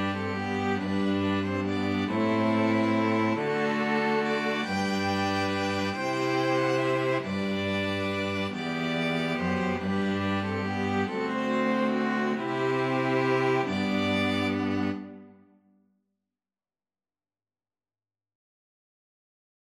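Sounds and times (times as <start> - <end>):
string quartet playing: 0.0 - 15.4.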